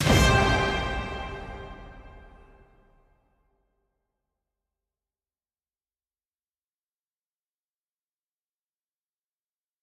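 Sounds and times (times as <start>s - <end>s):
jingle music: 0.0s - 2.6s.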